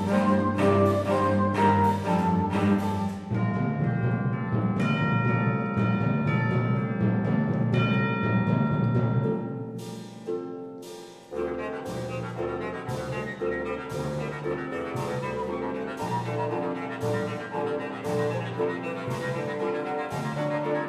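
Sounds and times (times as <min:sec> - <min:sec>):
bassoon: 0:00.0 - 0:07.1, 0:11.3 - 0:20.8
cello: 0:00.0 - 0:20.8
double bass: 0:00.0 - 0:20.8
harp: 0:00.0 - 0:20.8
timpani: 0:00.0 - 0:20.8.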